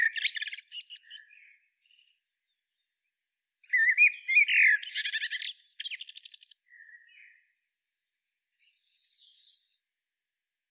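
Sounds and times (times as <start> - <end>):
Eurasian blackbird Turdus merula singing: 0.0 - 2.3, 3.6 - 7.4.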